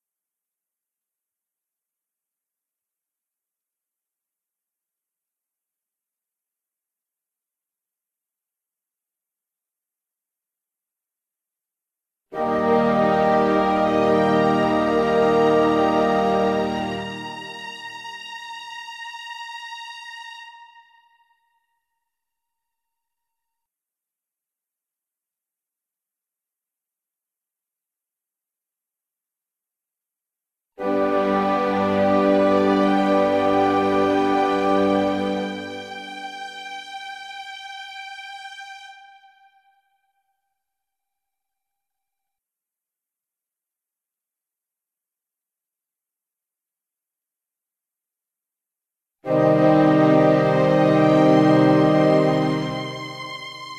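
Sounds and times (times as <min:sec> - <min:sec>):
instrumental music: 0:12.4 - 0:21.8, 0:30.8 - 0:40.1, 0:49.3 - 0:53.7.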